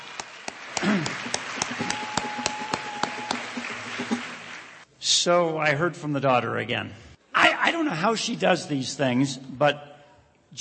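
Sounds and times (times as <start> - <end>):
audience round of applause: 0.0 - 4.8
speech: 5.2 - 7.1, 7.8 - 9.9.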